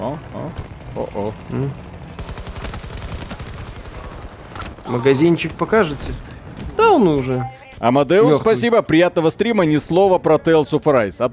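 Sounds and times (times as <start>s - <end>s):
video game anti-aircraft gunfire: 0.0s - 9.0s
speech: 0.2s - 1.9s, 4.9s - 6.3s, 6.9s - 11.3s.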